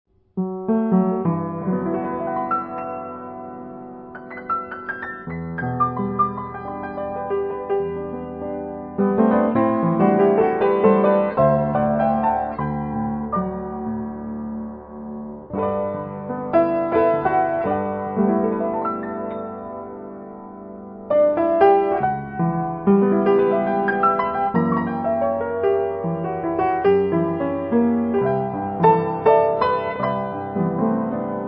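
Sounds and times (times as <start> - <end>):
piano: 0.1 - 31.4.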